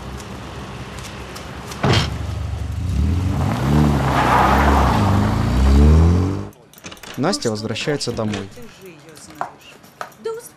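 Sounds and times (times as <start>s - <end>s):
car engine revving: 2.0s - 6.5s
speech: 7.2s - 8.8s.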